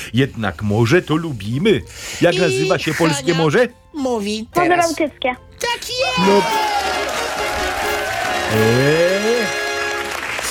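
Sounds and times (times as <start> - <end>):
speech: 0.1 - 7.0, 8.5 - 9.1
people clapping after a correct answer: 6.0 - 10.5.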